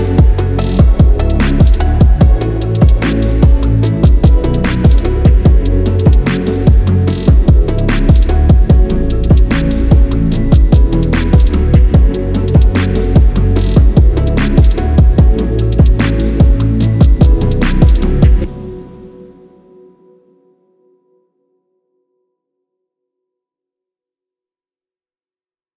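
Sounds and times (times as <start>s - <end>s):
phonk trap beat: 0.0s - 18.7s.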